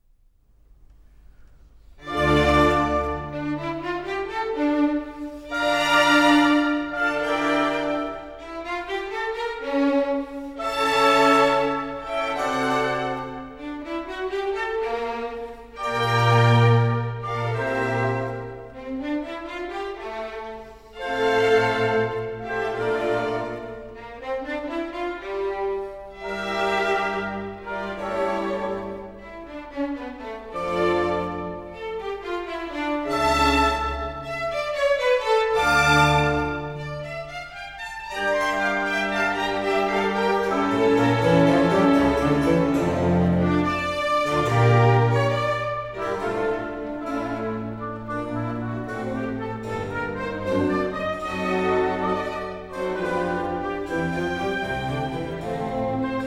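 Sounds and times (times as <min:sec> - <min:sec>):
concerto grosso in D minor: 0:00.0 - 0:56.2.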